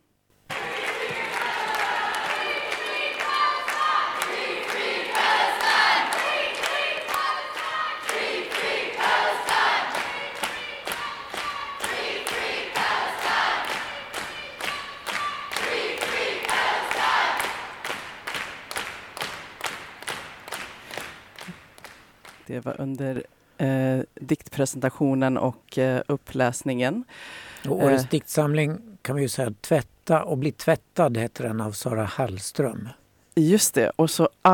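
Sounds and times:
crowd voices chanting in solidarity with Palestine: 0.5 - 17.8
speech: 22.6 - 34.5.

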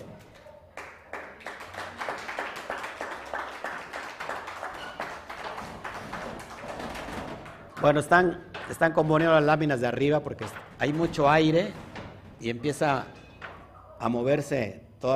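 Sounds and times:
audience applause: 0.8 - 7.9
speech: 7.8 - 11.8, 12.4 - 13.2, 14.0 - 15.1.

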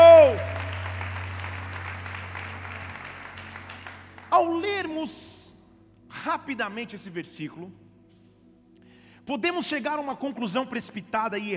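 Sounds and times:
crowd clapping: 0.0 - 4.9
low steady hum: 0.0 - 6.1
speech: 6.3 - 7.9, 9.3 - 11.5.

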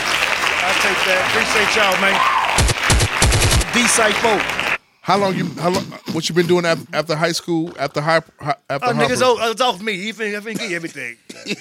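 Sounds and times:
applause for a guest: 0.0 - 4.8
speech: 0.8 - 2.4, 3.8 - 11.6.

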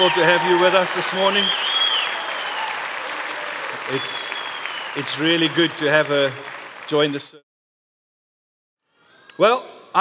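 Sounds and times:
speech: 0.0 - 1.8, 3.9 - 4.3, 5.0 - 7.4, 9.4 - 10.0
church congregation applauding to welcome a visitor: 0.0 - 7.4.

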